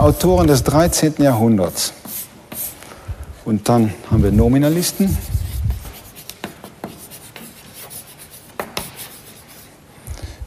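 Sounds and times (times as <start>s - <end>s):
speech: 0.0s - 2.0s, 3.4s - 5.4s
handwriting strokes writing a name: 2.0s - 2.8s, 4.3s - 9.7s.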